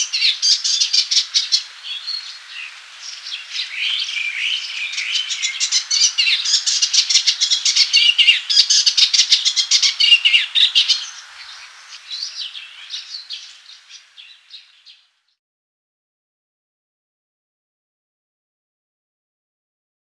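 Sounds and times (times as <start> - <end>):
Eastern olivaceous warbler song: 0.0 - 15.4.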